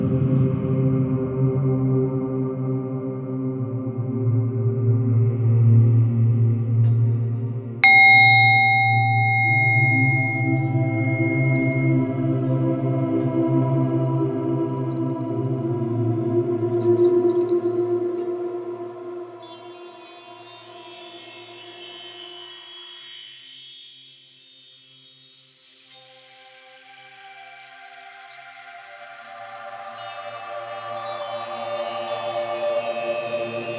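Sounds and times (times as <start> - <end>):
music: 0.0 - 33.7
gong: 7.8 - 13.0.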